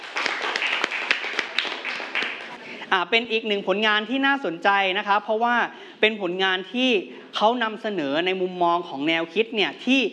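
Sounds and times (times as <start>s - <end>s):
classroom clapping for a student: 0.0s - 2.7s
speech: 2.9s - 10.1s.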